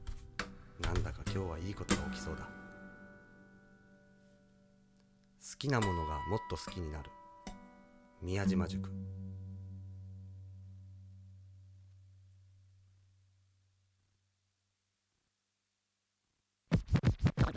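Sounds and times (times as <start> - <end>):
speech: 0.8 - 2.6, 5.5 - 7.2, 8.2 - 9.2
low humming tone: 8.6 - 13.5
vinyl record scratched back and forth: 16.7 - 17.5.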